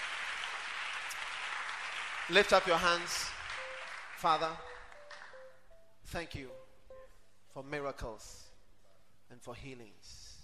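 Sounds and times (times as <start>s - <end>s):
muted audience applause: 0.0s - 5.4s
speech: 2.3s - 3.4s, 4.2s - 4.7s, 6.1s - 6.6s, 7.6s - 8.5s, 9.3s - 10.3s.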